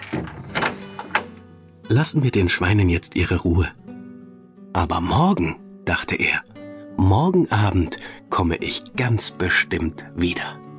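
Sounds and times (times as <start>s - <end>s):
door pushed shut: 0.0s - 1.5s
speech: 1.9s - 3.8s, 4.7s - 10.6s.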